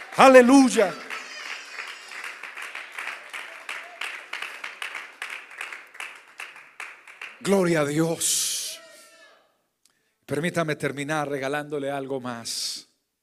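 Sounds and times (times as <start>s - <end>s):
crowd applauding: 0.0s - 7.8s
speech: 0.2s - 1.0s, 7.4s - 8.5s, 10.3s - 12.9s.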